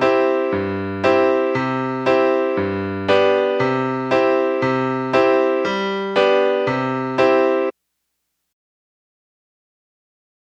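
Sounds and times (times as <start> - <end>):
musical accompaniment in C: 0.0 - 7.8.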